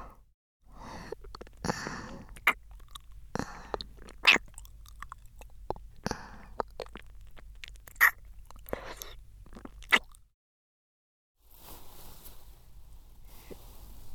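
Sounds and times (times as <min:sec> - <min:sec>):
ear licking sounds: 0:01.1 - 0:10.3.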